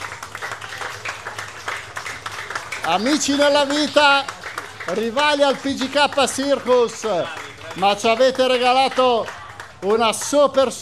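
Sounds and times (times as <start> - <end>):
audience applause: 0.0 - 10.8
speech: 2.8 - 10.8.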